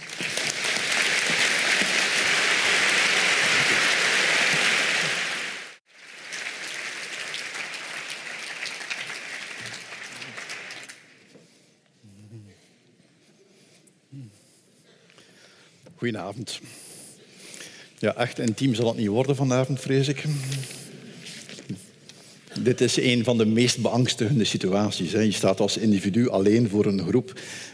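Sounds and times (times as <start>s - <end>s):
audience applause in a large hall: 0.0s - 11.2s
speech: 16.0s - 16.8s, 18.0s - 20.8s, 22.6s - 27.7s.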